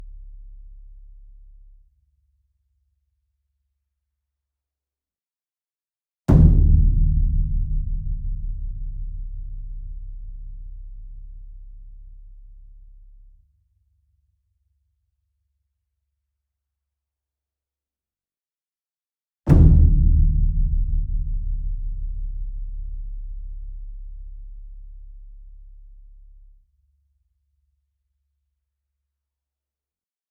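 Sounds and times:
ensemble concert bass drum and taiko hit: 6.3 - 11.4, 19.5 - 23.7.

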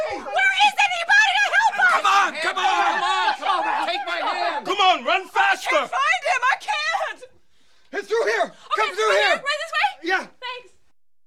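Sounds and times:
panicked crowd walla: 0.0 - 7.4, 8.0 - 10.8
laughter: 1.8 - 4.8.

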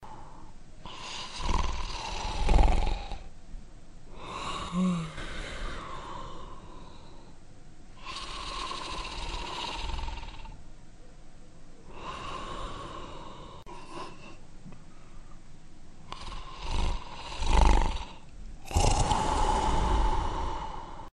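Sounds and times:
monster sleeping: 0.8 - 3.3, 4.1 - 7.3, 8.0 - 10.6, 11.9 - 14.4, 16.1 - 21.1.

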